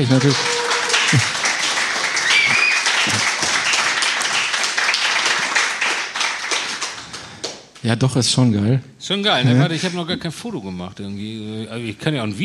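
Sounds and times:
speech: 0.0 - 1.5, 7.8 - 12.4
crowd applauding: 0.0 - 7.6.

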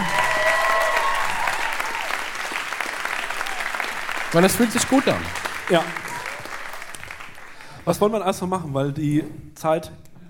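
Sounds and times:
audience applause: 0.0 - 8.2
speech: 4.3 - 6.0, 7.9 - 10.2.

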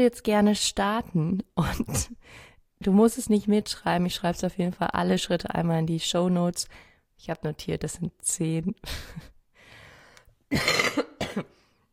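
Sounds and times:
speech: 0.0 - 9.3, 10.5 - 11.6
person coughing: 10.5 - 11.6.

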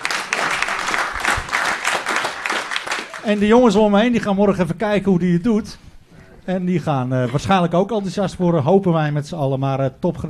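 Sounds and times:
audience applause: 0.0 - 3.5
speech: 3.2 - 5.8, 6.4 - 10.2.

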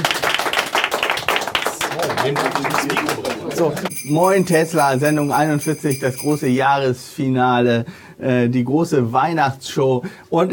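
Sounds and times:
audience applause: 0.0 - 3.9
speech: 2.2 - 10.5.

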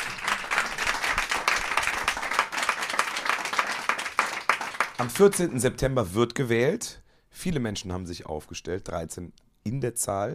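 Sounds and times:
audience applause: 0.0 - 5.4
speech: 5.0 - 10.3.

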